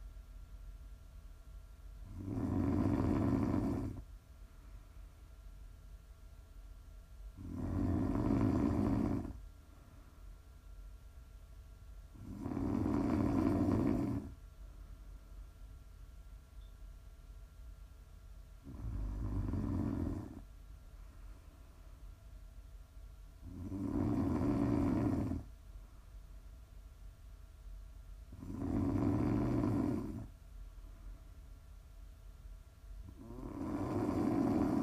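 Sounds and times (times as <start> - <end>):
low steady hush: 0.0 - 34.8
person snoring: 2.1 - 4.0, 7.4 - 9.4, 12.2 - 14.4, 18.6 - 20.4, 23.4 - 25.5, 28.3 - 30.3, 33.1 - 34.8.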